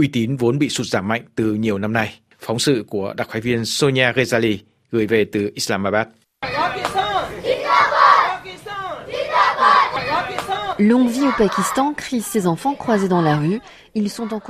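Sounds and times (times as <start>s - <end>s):
speech: 0.0s - 7.0s, 10.8s - 14.4s
children shouting patriotic slogans in street: 6.4s - 14.4s.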